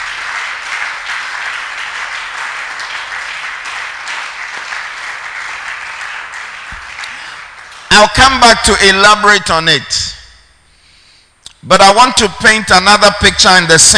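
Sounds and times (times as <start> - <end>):
audience applause: 0.0 - 7.9
speech: 8.0 - 10.2, 11.6 - 13.9.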